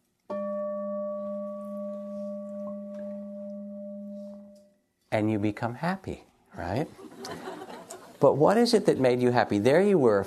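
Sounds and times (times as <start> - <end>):
meditation bell ringing: 0.3 - 4.9
speech: 5.1 - 7.6, 8.2 - 10.2
laughter: 6.9 - 8.2.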